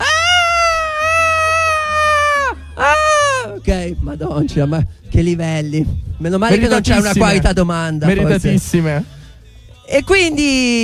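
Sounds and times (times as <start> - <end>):
person imitating a seagull cry: 0.0 - 3.6
speech: 3.9 - 9.2, 9.9 - 10.8.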